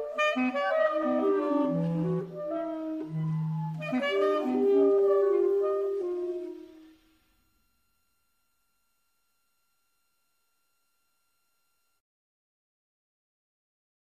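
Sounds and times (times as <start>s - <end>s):
clarinet trio: 0.0s - 7.7s.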